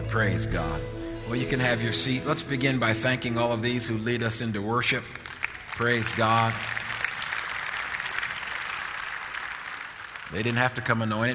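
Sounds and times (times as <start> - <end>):
speech: 0.1 - 5.2, 5.8 - 6.8, 10.3 - 11.3
audience applause: 4.7 - 11.1.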